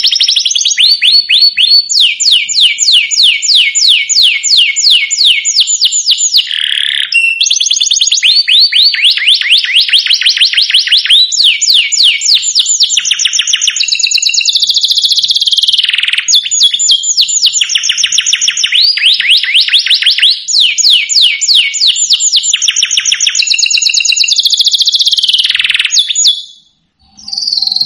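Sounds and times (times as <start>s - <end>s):
domestic canary song: 0.0s - 27.8s.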